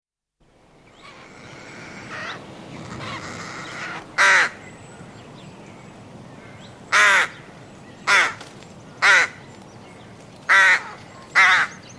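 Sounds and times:
adult rook giving hoarse raspy caws: 0:01.0 - 0:04.6, 0:06.4 - 0:08.4, 0:09.0 - 0:09.4, 0:10.5 - 0:11.8.

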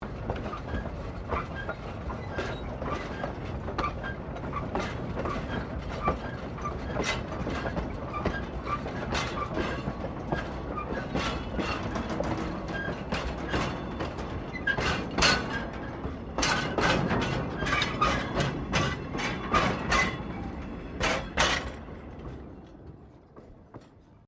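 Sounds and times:
steam train trucks rolling: 0:00.0 - 0:24.2.

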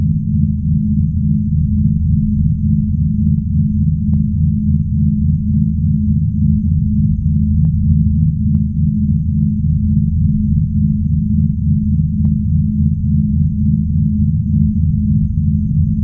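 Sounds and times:
spaceship drone hum: 0:00.0 - 0:16.0.

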